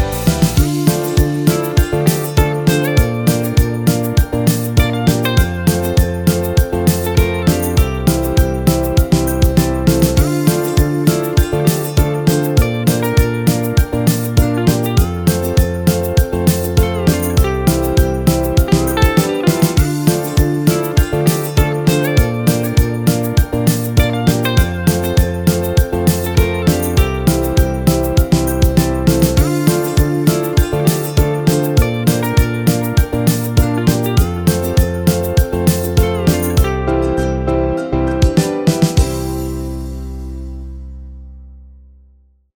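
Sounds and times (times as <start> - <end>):
uplifting guitar background music: 0.0 - 41.0.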